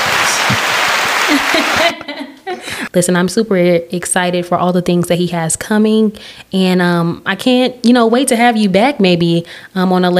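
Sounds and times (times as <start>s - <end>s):
audience applause: 0.0s - 2.0s
laughter: 1.1s - 2.8s
speech: 1.3s - 10.1s.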